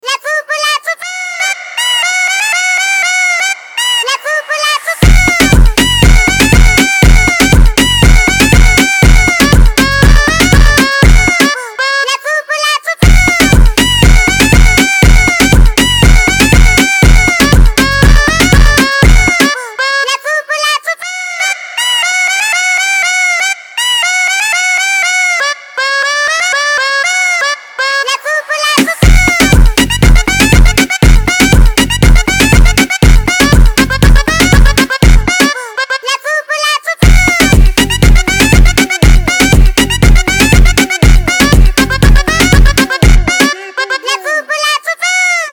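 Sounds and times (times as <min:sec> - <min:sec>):
sped up reggaeton: 0:00.0 - 0:44.9.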